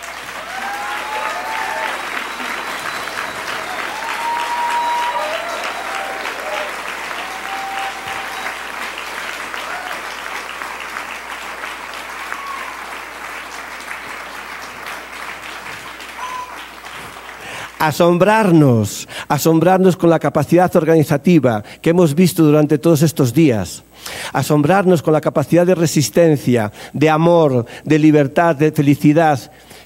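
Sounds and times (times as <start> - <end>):
loud audience applause: 0.0 - 18.3
speech: 17.8 - 29.6.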